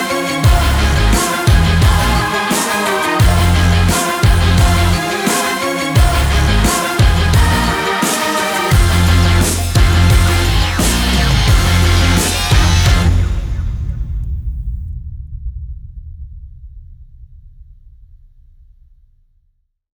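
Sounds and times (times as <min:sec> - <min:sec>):
cinematic music: 0:00.0 - 0:14.6.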